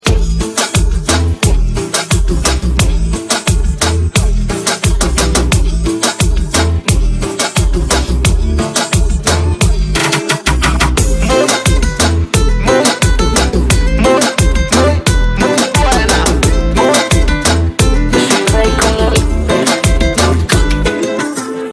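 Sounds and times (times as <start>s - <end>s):
instrumental music: 0.0s - 21.7s.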